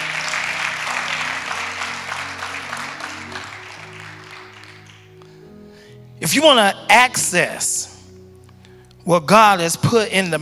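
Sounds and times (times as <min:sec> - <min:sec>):
audience applause: 0:00.0 - 0:05.3
speech: 0:06.2 - 0:07.9, 0:09.0 - 0:10.4.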